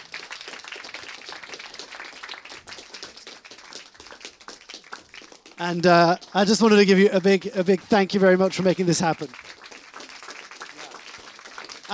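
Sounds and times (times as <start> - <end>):
crowd applauding: 0.0 - 11.9
speech: 5.6 - 9.5.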